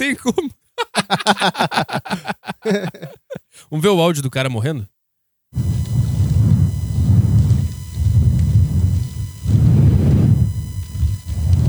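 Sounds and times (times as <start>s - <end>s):
laughter: 0.0s - 3.5s
speech: 0.0s - 5.9s
strong gusting wind: 5.6s - 11.6s.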